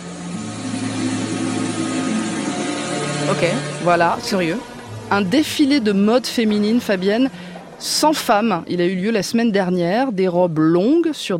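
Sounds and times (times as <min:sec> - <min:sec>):
drones flying in a hotel hall: 0:00.0 - 0:07.8
speech: 0:03.3 - 0:11.3.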